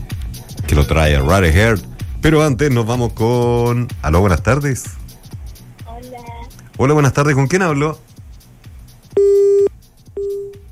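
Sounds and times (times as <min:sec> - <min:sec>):
speech: 0:00.8 - 0:05.0, 0:06.8 - 0:08.1
telephone busy tone on a live radio call-in line: 0:09.2 - 0:10.6.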